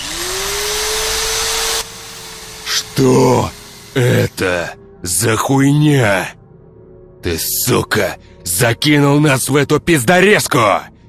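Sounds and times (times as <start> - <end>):
electric drill whirring against a bound person's knee in a garage: 0.0 - 4.4
speech: 3.0 - 6.4, 7.2 - 10.9.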